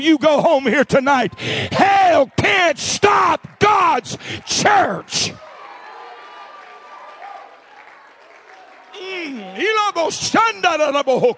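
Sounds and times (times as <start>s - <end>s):
speech: 0.0s - 5.5s, 9.0s - 11.3s
audience clapping: 2.0s - 10.2s.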